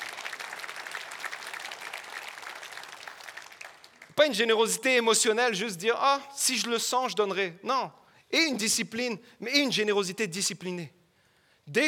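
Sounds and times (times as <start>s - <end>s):
audience applauding: 0.0s - 4.2s
speech: 4.2s - 11.0s, 11.7s - 11.8s.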